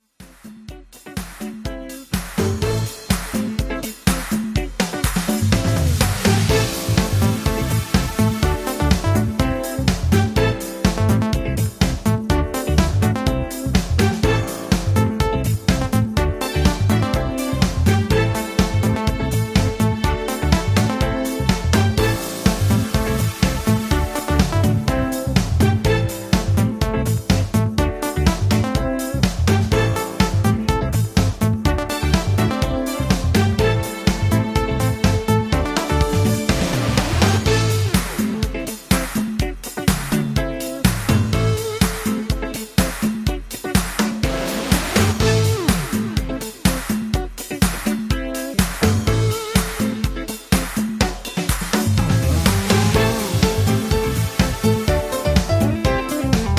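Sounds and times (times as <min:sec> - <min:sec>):
instrumental music: 0:00.0 - 0:56.5.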